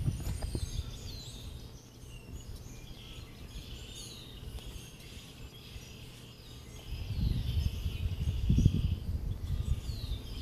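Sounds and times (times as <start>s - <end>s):
faint bird chirps: 0.0s - 10.3s
soft outdoor hush on a snowy morning: 0.0s - 10.3s.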